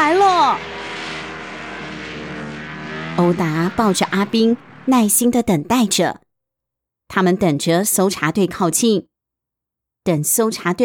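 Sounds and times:
snowmobile engine: 0:00.0 - 0:06.0
speech: 0:03.2 - 0:06.2, 0:07.1 - 0:09.1, 0:10.0 - 0:10.8.

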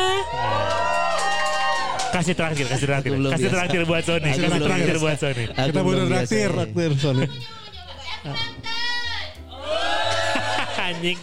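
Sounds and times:
studio audience cheering and shouting: 0:00.0 - 0:03.0, 0:09.5 - 0:11.2
speech: 0:02.1 - 0:07.6, 0:08.2 - 0:08.6, 0:10.9 - 0:11.2
laughter: 0:02.2 - 0:06.2, 0:09.6 - 0:11.2.

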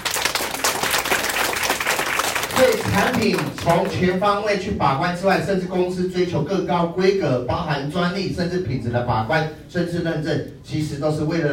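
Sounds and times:
warm audience applause: 0:00.0 - 0:04.0
speech: 0:02.9 - 0:11.5.

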